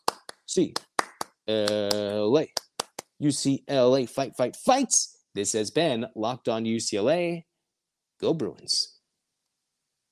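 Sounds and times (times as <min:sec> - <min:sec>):
rhythmic eight-clap cheer hand clapping: 0:00.0 - 0:03.2
speech: 0:00.5 - 0:00.9, 0:01.5 - 0:02.6, 0:03.2 - 0:07.5, 0:08.2 - 0:09.0.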